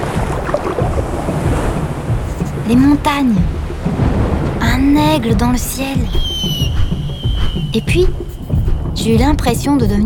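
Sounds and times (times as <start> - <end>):
ocean waves: 0.0 - 10.0
speech: 2.7 - 4.0, 4.8 - 6.6, 7.7 - 8.2, 9.0 - 10.0.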